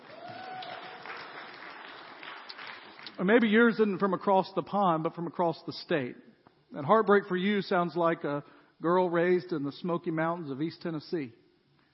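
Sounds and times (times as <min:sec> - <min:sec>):
crowd applause: 0:00.0 - 0:03.2
speech: 0:03.2 - 0:11.4.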